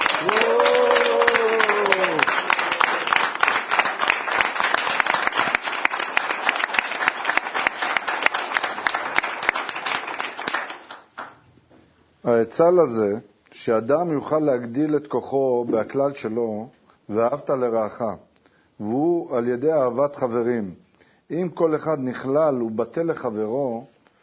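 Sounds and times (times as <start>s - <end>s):
applause: 0.0s - 11.4s
speech: 12.4s - 23.9s.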